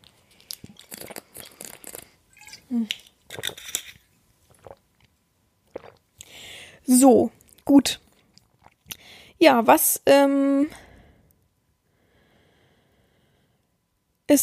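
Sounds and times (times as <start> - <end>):
person taking a sip of a drink: 0.1 - 5.1, 5.7 - 6.6, 8.2 - 9.1
speech: 2.7 - 3.8, 6.9 - 8.0, 9.4 - 10.8.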